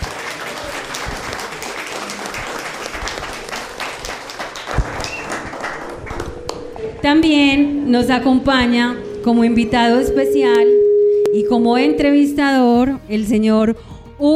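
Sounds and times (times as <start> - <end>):
audience applause: 0.0 - 6.7
speech: 7.0 - 14.3.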